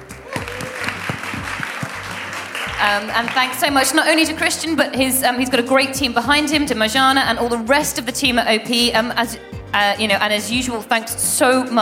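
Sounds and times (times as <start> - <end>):
audience applause: 0.0 - 4.1
speech: 2.8 - 11.8.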